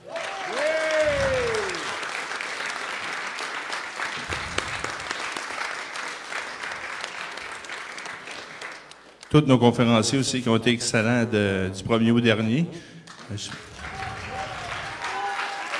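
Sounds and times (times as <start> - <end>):
audience applause: 0.0 - 9.2, 13.1 - 15.7
speech: 9.4 - 13.7.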